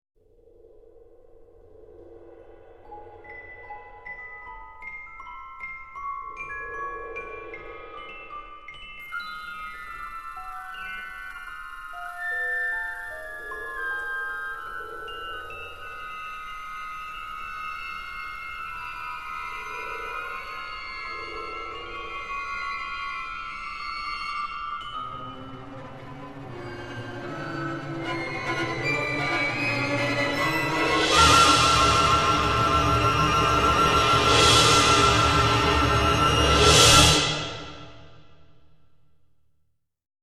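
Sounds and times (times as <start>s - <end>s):
eerie tense music: 12.8s - 38.6s.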